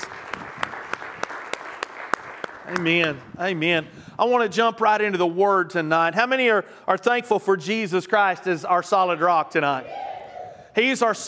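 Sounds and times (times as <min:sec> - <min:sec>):
audience hand clapping: 0:00.0 - 0:03.3
speech: 0:02.7 - 0:10.1, 0:10.8 - 0:11.2.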